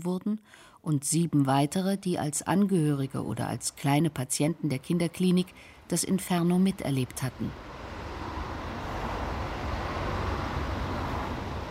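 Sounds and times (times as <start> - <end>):
speech: 0.0 - 7.8
road traffic passing on Pfotenhauer Straße in Dresden-Johannstadt: 4.5 - 11.6.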